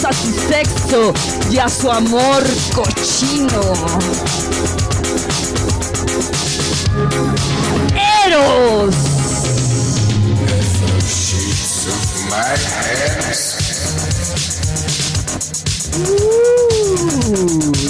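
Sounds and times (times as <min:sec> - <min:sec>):
crowd noise: 0:00.0 - 0:14.6
loud busy music: 0:00.0 - 0:17.8
speech: 0:00.1 - 0:05.0, 0:07.0 - 0:09.1, 0:11.9 - 0:13.6, 0:16.0 - 0:17.8
person imitating a cat with a long wavering meow: 0:15.9 - 0:17.8.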